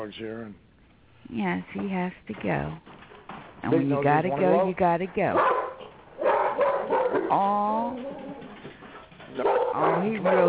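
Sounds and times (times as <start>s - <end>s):
speech: 0.0s - 2.9s, 3.6s - 5.6s, 7.1s - 8.3s, 9.3s - 10.4s
dog barking to go outside: 5.3s - 7.4s, 9.4s - 10.4s.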